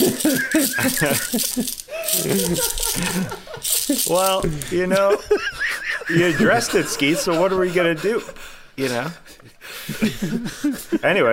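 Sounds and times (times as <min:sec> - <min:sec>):
laughter: 0:00.0 - 0:04.1, 0:04.7 - 0:08.4, 0:09.2 - 0:11.0
overlapping voices: 0:00.0 - 0:04.8
glass liquor bottles being shaken: 0:00.0 - 0:04.9
speech: 0:00.6 - 0:11.3.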